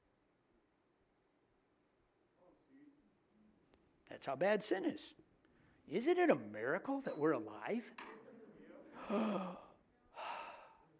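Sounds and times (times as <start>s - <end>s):
speech: 4.1s - 5.2s, 5.9s - 8.2s, 9.0s - 9.6s
deep breath during a sermon: 8.9s - 10.9s.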